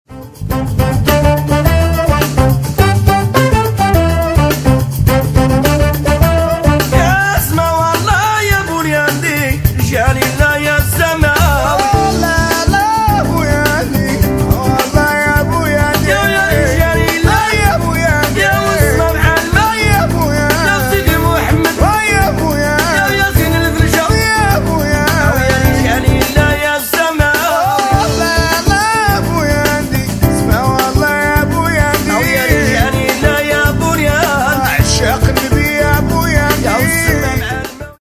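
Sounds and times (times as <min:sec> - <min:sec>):
Gnaoua percussion of Essaouira: 0:00.3 - 0:37.9.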